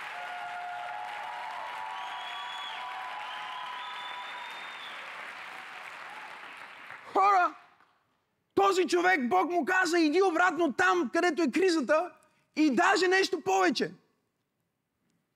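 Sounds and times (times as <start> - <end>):
church congregation applauding during a sermon: 0.0 - 7.8
speech: 8.7 - 14.0.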